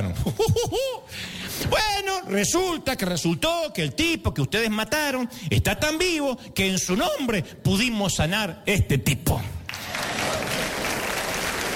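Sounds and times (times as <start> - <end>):
speech: 0.0 - 9.6
audience applause during a church sermon: 9.7 - 11.7.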